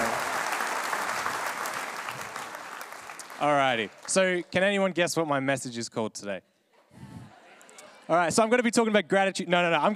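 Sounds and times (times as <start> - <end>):
audience applause: 0.0 - 4.5
speech: 3.4 - 6.5, 8.1 - 9.9.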